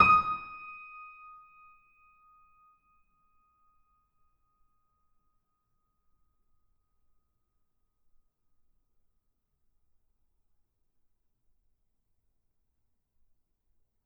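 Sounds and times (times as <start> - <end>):
bitKlavierGrand piano note D#6 binaural: 0.0 - 0.8.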